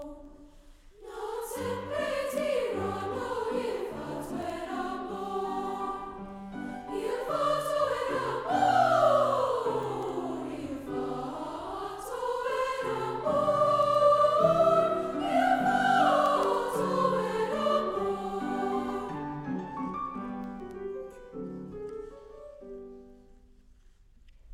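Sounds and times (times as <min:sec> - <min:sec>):
beginning women's chorus singing: 0:00.0 - 0:19.5.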